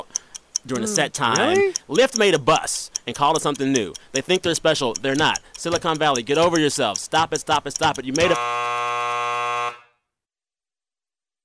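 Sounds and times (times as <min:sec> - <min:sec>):
speech: 0:00.6 - 0:08.7
overtime buzzer blaring: 0:08.2 - 0:10.0.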